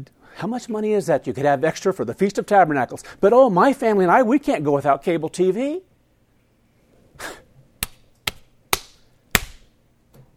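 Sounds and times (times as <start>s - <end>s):
speech: 0.0s - 5.9s, 7.2s - 7.4s
hand slapping own face: 7.8s - 9.7s.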